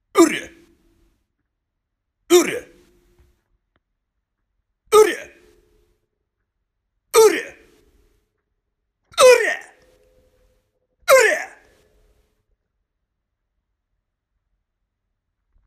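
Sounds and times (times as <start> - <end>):
voice: 0.2 - 0.6, 2.3 - 2.8, 4.9 - 5.5, 7.2 - 7.6, 9.2 - 9.8, 11.1 - 11.7.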